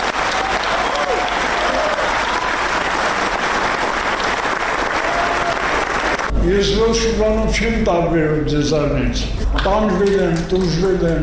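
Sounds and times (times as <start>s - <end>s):
long audience applause at a film screening for director Artavazd Peleshyan: 0.0s - 6.3s
speech: 6.5s - 11.2s.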